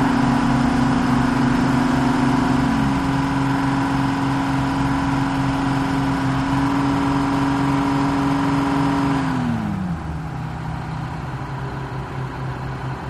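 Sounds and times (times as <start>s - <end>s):
diesel engine revving: 0.0s - 13.0s.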